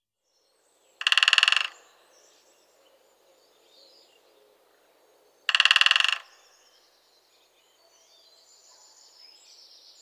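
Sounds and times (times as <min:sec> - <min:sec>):
great spotted woodpecker drumming: 0:01.0 - 0:01.8, 0:05.5 - 0:06.3.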